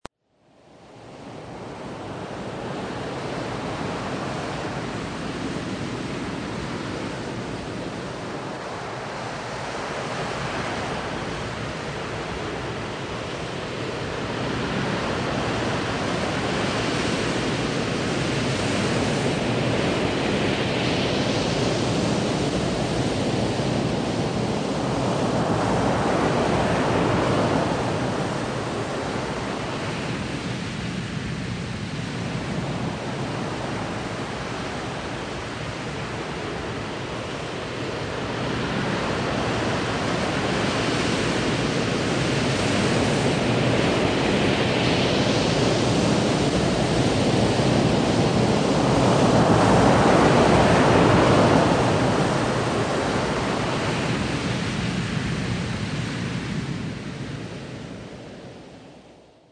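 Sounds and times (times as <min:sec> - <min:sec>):
ocean waves: 0:01.1 - 0:59.1.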